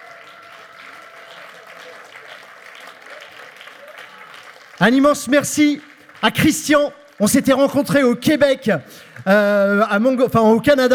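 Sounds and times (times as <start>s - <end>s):
crowd applause: 0.0s - 8.2s
speech: 4.8s - 10.9s.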